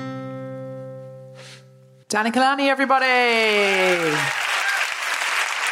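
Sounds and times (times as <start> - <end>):
speech: 2.1 - 4.4
audience applause: 3.4 - 5.7.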